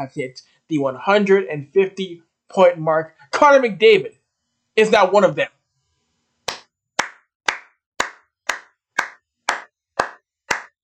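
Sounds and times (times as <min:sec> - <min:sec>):
speech: 0:00.0 - 0:04.2, 0:04.8 - 0:05.6
hands clapping: 0:06.5 - 0:10.8.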